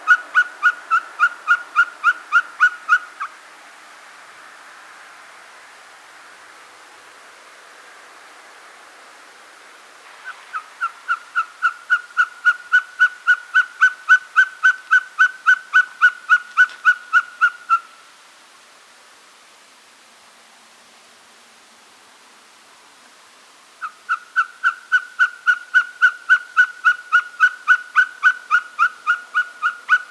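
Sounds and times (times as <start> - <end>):
Mochuelo patagon Glaucidium nana call: 0.0 - 3.3, 10.2 - 18.0, 23.8 - 30.0.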